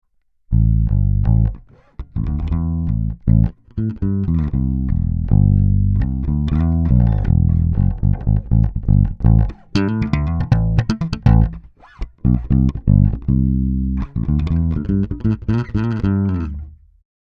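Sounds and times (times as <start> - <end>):
dry electric bass: 0.5 - 17.0.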